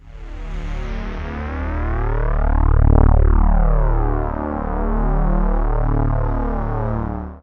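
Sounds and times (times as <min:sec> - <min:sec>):
big trance synth sweep: 0:00.0 - 0:07.2.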